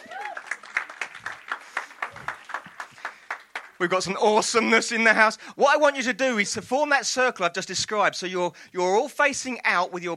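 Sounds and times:
audience clapping: 0:00.0 - 0:04.4
speech: 0:03.8 - 0:10.1.

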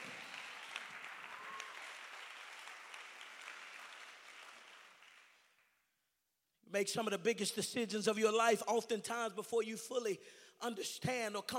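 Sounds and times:
audience clapping hands: 0:00.0 - 0:05.9
speech: 0:06.7 - 0:11.5.

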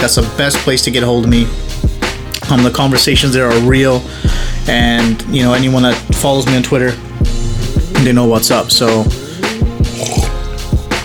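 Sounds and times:
speech: 0:00.0 - 0:01.7, 0:02.5 - 0:07.1, 0:08.0 - 0:09.2
person sipping hot chai: 0:07.0 - 0:11.0.

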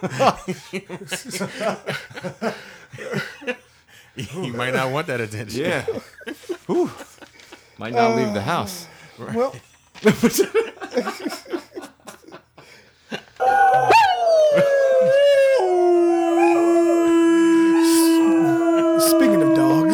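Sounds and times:
speech: 0:00.0 - 0:03.6, 0:04.2 - 0:07.1, 0:07.8 - 0:11.3
laughter: 0:00.0 - 0:19.9
dogs howling: 0:07.9 - 0:08.6, 0:13.4 - 0:19.9.

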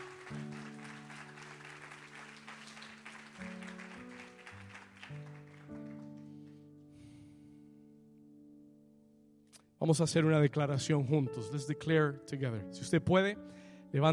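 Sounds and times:
audience applause: 0:00.0 - 0:06.6
speech: 0:09.8 - 0:14.1.

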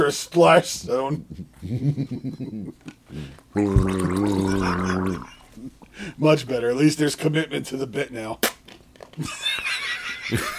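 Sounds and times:
speech: 0:00.1 - 0:08.6, 0:09.2 - 0:10.5
person gargling beer as a sound effect: 0:03.5 - 0:05.7.

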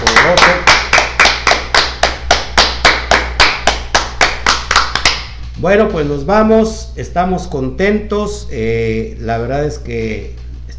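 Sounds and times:
audience applause: 0:00.0 - 0:05.1
speech: 0:05.6 - 0:10.4.

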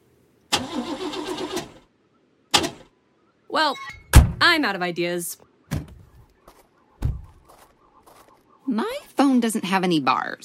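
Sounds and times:
car engine cranking and starting: 0:00.5 - 0:01.9
speech: 0:03.6 - 0:05.5, 0:08.7 - 0:10.4.

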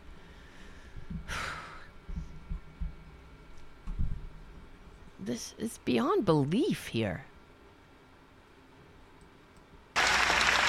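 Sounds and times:
speech: 0:05.3 - 0:07.3
applause: 0:10.0 - 0:10.6.

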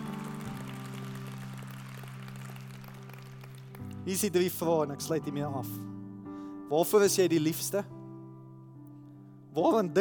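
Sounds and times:
audience applause: 0:00.0 - 0:04.0
speech: 0:04.0 - 0:05.9, 0:06.7 - 0:08.0, 0:09.6 - 0:09.9.

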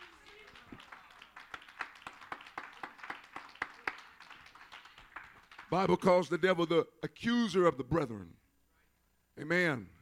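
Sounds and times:
crowd clapping hands: 0:00.0 - 0:06.1
speech: 0:05.7 - 0:08.4, 0:09.4 - 0:10.0.

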